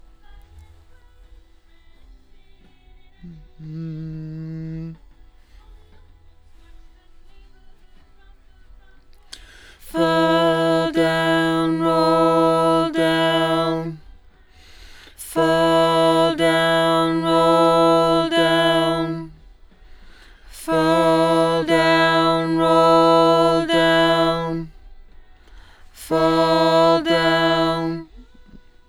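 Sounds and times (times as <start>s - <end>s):
doubled lead vocal: 3.2s - 5.0s, 9.3s - 14.0s, 14.6s - 19.4s, 20.1s - 24.8s, 25.8s - 28.2s.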